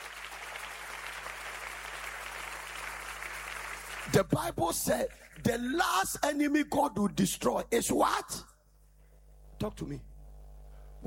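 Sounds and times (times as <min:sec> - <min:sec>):
crowd applauding: 0:00.0 - 0:05.6
faint low electrical hum: 0:00.0 - 0:11.0
speech: 0:04.1 - 0:08.5, 0:09.6 - 0:10.1.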